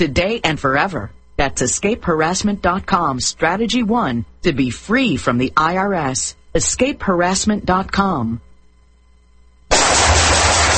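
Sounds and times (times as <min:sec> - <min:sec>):
speech: 0:00.0 - 0:08.5
gunfire: 0:09.7 - 0:10.7.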